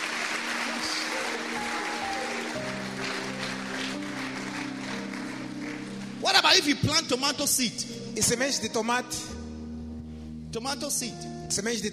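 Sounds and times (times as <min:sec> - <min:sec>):
audience clapping: 0:00.0 - 0:06.7
speech: 0:06.6 - 0:09.4, 0:10.5 - 0:11.9.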